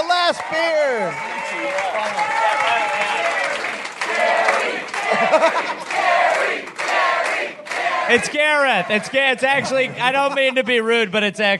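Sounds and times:
comedy audience whoops and shouts: 0.0s - 3.6s
comedy audience applause welcoming a comedian: 0.0s - 9.0s
speech: 0.3s - 2.6s, 5.3s - 6.7s, 8.1s - 11.5s
laughter: 4.9s - 6.3s, 9.6s - 11.2s.

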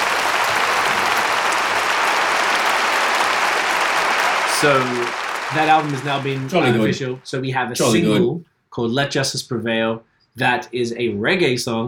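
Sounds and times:
crowd applause: 0.0s - 8.2s
speech: 4.6s - 11.8s.

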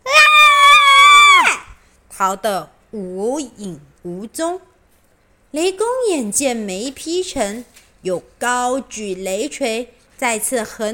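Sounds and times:
two sisters screaming: 0.0s - 1.8s
speech: 2.2s - 4.7s, 5.5s - 10.9s.

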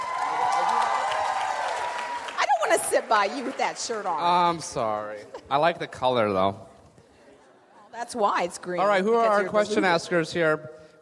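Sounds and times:
audience applause: 0.0s - 4.5s
speech: 2.7s - 6.7s, 8.0s - 10.8s.

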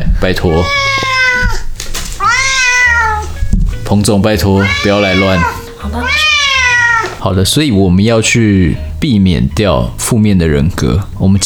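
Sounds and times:
speech: 0.2s - 1.2s, 3.9s - 6.2s, 7.2s - 11.4s
cat meowing: 0.4s - 3.5s, 4.4s - 7.2s.

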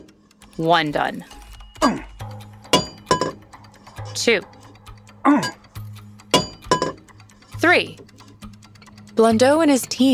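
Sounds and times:
speech: 0.6s - 2.1s, 4.2s - 4.6s, 5.2s - 5.6s, 7.7s - 8.1s, 9.2s - 10.1s
hammer striking a coin die on metal: 2.7s - 3.4s, 6.3s - 7.0s.

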